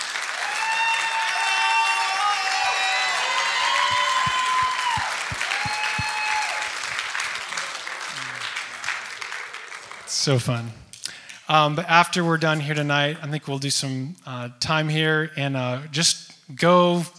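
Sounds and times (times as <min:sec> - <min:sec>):
crowd applauding: 0:00.0 - 0:11.4
sharper rhythmic claps: 0:00.0 - 0:12.3
cheering and whoops: 0:00.3 - 0:08.0
speech: 0:10.2 - 0:10.8, 0:11.5 - 0:17.1.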